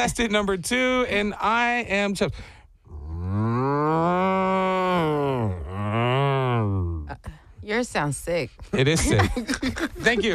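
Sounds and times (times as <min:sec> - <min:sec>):
speech: 0:00.0 - 0:02.6, 0:07.7 - 0:10.3
person imitating a cow's moo: 0:02.9 - 0:07.1
laughter: 0:08.8 - 0:10.3.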